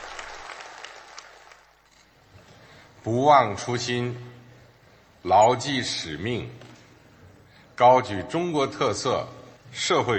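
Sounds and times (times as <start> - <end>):
warm applause from a roomful of people in an indoor room: 0.0 - 1.8
speech: 3.0 - 4.3, 5.2 - 6.7, 7.8 - 10.1.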